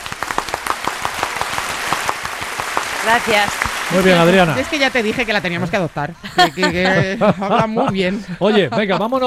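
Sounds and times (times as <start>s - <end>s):
audience applause: 0.0s - 6.7s
speech: 3.0s - 9.2s
laughter: 3.9s - 9.2s.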